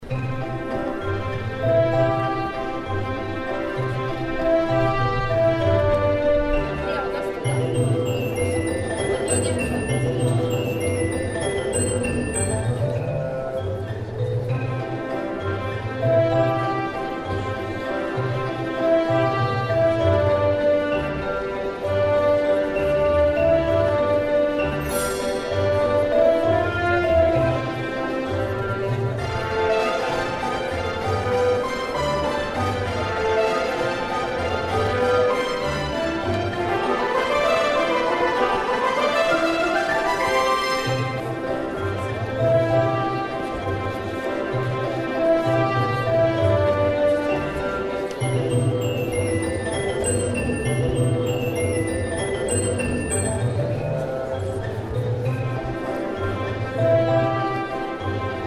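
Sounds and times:
circus music: 0.0 - 58.4
crowd ambience: 0.0 - 58.4.

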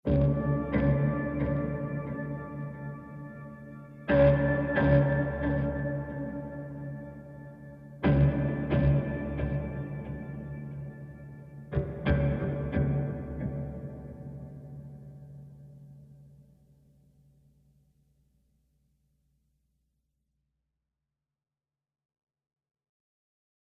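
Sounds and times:
lap steel guitar rhythm: 0.1 - 15.6.

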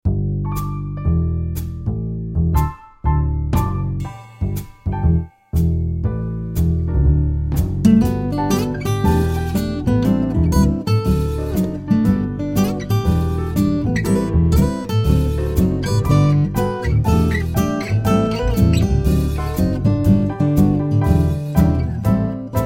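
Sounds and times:
acoustic tune: 0.0 - 22.6.

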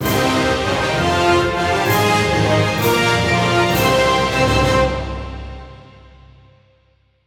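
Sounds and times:
midboss battle victory melody: 0.0 - 6.2.

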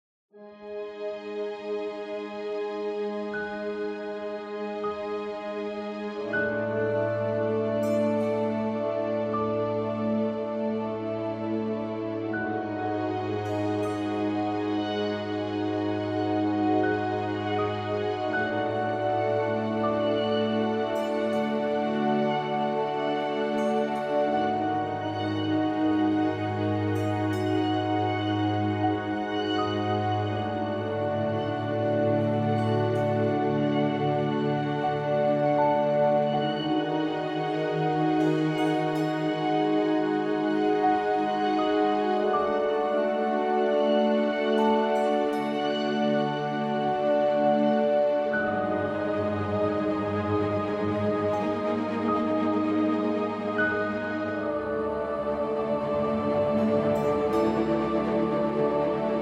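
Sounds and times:
calm music: 0.3 - 59.2.

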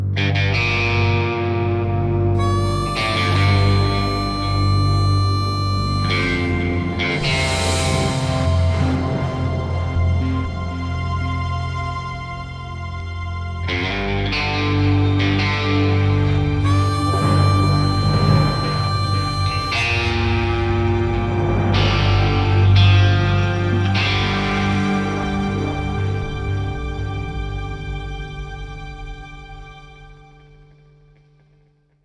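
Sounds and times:
music cue for a scientist appearing: 0.2 - 29.2.

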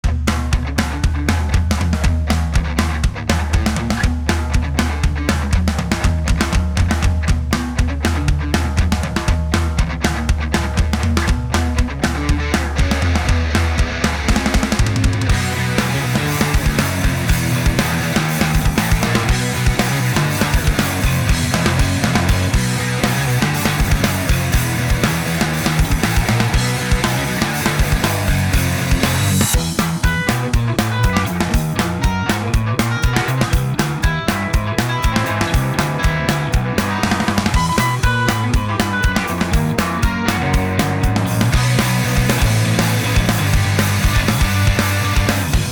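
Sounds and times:
instrumental music: 0.2 - 45.7.

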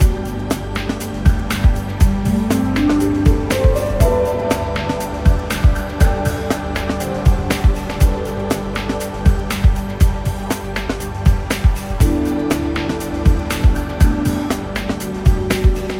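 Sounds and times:
background music: 0.0 - 15.9.

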